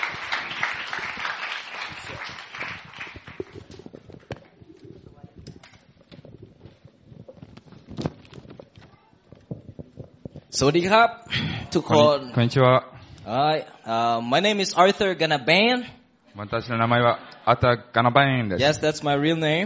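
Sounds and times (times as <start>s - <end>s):
audience applause: 0.0s - 4.0s
speech: 10.6s - 19.6s.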